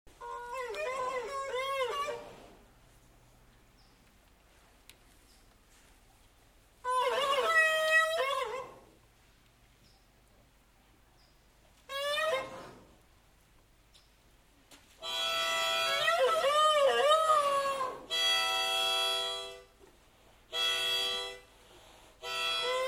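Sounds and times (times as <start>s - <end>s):
wind instrument: 0.1s - 2.6s, 6.8s - 8.9s, 11.9s - 12.8s, 15.0s - 19.8s, 20.5s - 21.5s, 22.1s - 22.8s.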